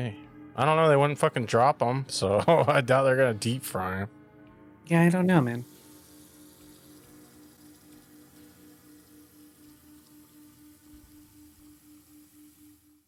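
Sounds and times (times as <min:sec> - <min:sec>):
speech: 0:00.0 - 0:04.2, 0:04.9 - 0:05.7
water running over worms rinsed in a colander: 0:05.4 - 0:13.0.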